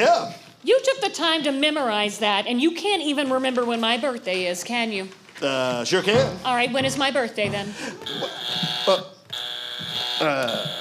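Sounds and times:
speech: 0.0 - 9.1, 10.2 - 10.7
harsh high-pitched electric buzzer: 8.0 - 10.7.

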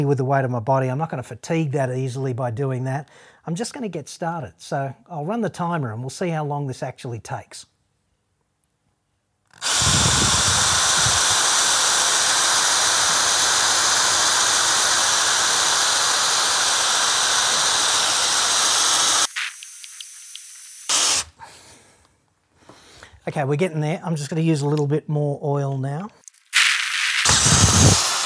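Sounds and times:
speech: 0.0 - 7.7, 23.2 - 26.2
hand drill boring into steel: 9.5 - 19.8, 20.7 - 21.3, 26.6 - 28.2.

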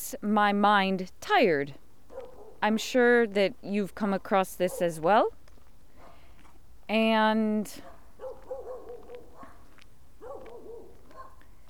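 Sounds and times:
speech: 0.1 - 1.8, 2.6 - 5.4, 6.9 - 7.9
dogs barking: 2.1 - 2.6, 4.7 - 5.0, 7.8 - 11.5.

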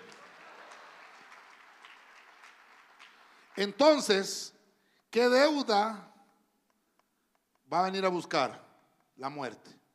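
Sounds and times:
audience clapping hands loudly: 0.0 - 4.4
speech: 3.6 - 6.1, 7.7 - 8.6, 9.2 - 9.8.

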